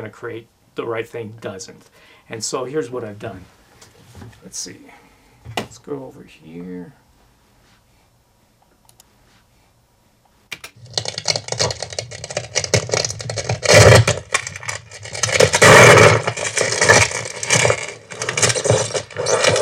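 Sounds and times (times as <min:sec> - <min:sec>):
speech: 0:00.0 - 0:05.0, 0:05.7 - 0:07.0
ice breaking: 0:10.8 - 0:19.5.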